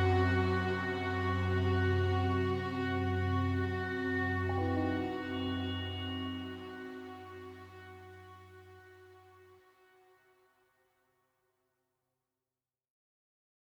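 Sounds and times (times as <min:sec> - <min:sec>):
modern suspense music: 0:00.1 - 0:07.8.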